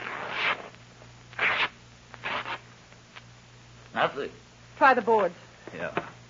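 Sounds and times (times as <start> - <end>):
mattress ripped open by a gloved hand: 0.0 - 0.8, 1.4 - 2.6
speech: 4.0 - 6.2.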